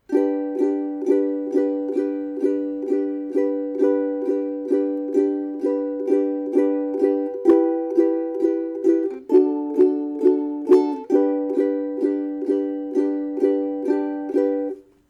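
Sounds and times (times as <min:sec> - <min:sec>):
ukulele strumming: 0:00.0 - 0:15.0.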